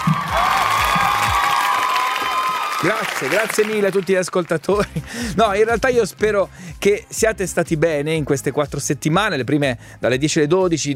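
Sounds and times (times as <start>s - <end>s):
crowd cheering: 0.0s - 4.6s
canned applause: 0.0s - 4.8s
speech: 2.8s - 10.9s.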